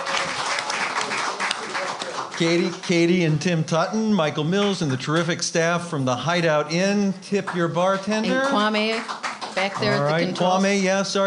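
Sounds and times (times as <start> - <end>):
audience applause: 0.0 - 3.4, 7.5 - 11.0
speech: 2.4 - 11.2.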